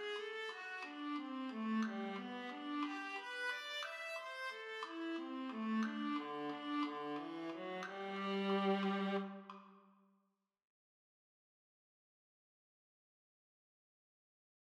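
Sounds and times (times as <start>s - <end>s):
viola in a chamber orchestra: 0.0s - 9.7s.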